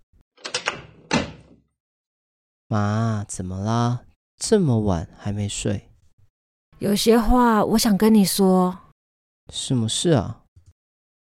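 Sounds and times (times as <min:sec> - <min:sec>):
door latch clicking and rattling: 0:00.4 - 0:01.6
door opening: 0:00.4 - 0:01.6
speech: 0:02.7 - 0:05.9, 0:06.8 - 0:08.8, 0:09.5 - 0:10.4.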